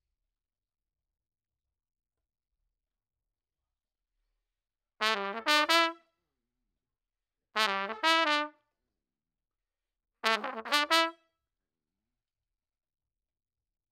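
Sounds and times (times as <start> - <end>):
trumpet: 5.0 - 6.0, 7.6 - 8.6, 10.2 - 11.2.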